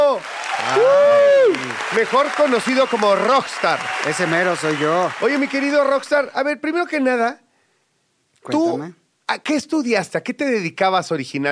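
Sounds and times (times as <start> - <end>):
person cheering: 0.0 - 5.7
studio audience applause: 0.0 - 6.3
speech: 1.9 - 7.4, 8.4 - 11.5.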